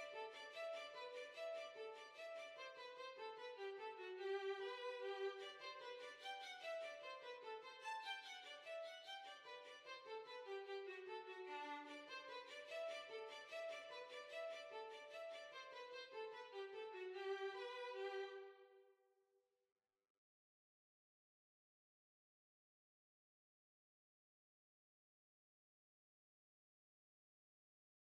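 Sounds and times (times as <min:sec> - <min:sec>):
violin: 0:00.0 - 0:18.8.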